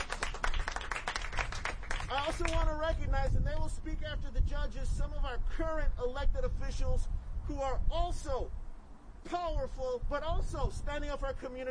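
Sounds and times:
audience applause: 0.0 - 2.6
speech: 2.1 - 8.6, 9.2 - 11.6.

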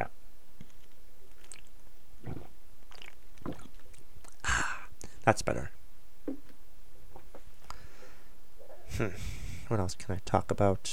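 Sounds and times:
person drinking a swig of water: 0.6 - 5.2
speech: 5.3 - 5.8, 9.0 - 10.9.

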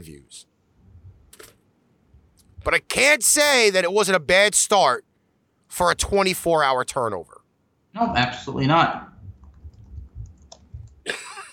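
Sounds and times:
speech: 0.0 - 0.5, 2.6 - 5.1, 5.7 - 9.1
low rumble: 9.1 - 11.0
harsh cough: 11.0 - 11.5.

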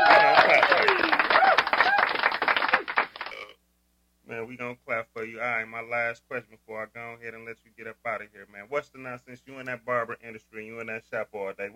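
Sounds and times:
hand clapping: 0.0 - 3.4
speech: 4.7 - 11.7.

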